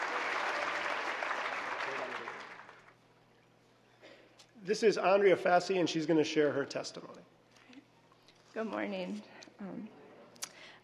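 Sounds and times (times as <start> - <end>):
audience applause: 0.0 - 3.0
speech: 4.7 - 7.4, 8.6 - 10.0.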